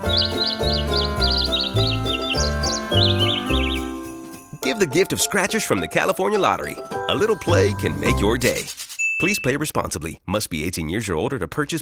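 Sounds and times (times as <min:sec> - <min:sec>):
bird chirping a tune: 0:00.0 - 0:08.4
loud instrumental backing track: 0:00.0 - 0:08.7
speech: 0:04.8 - 0:11.8.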